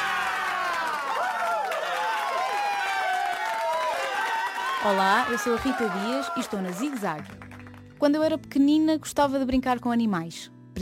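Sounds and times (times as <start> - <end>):
excited voices and whoops: 0.0 - 7.2
large audience applause: 0.0 - 8.0
speech: 4.8 - 10.8.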